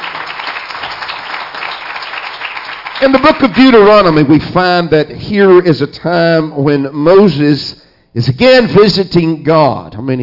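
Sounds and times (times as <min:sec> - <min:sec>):
church congregation clapping hands in praise during a worship service: 0:00.0 - 0:04.5
speech: 0:03.0 - 0:10.2.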